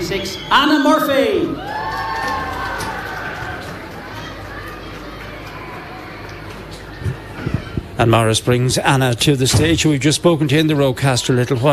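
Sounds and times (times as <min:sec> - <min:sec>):
speech: 0:00.1 - 0:01.8, 0:08.0 - 0:11.7
huge crowd at a Wexford Festival Opera event cheering and clapping: 0:01.2 - 0:07.8.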